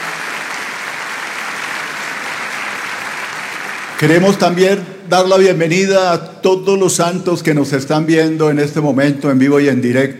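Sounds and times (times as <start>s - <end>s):
audience giving warm applause: 0.0s - 4.5s
speech: 4.0s - 10.1s.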